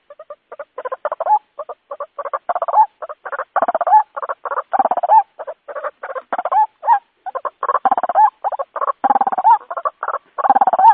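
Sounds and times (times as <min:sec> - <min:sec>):
white-breasted waterhen lure call of nasal upward-inflected notes: 0:00.0 - 0:10.9.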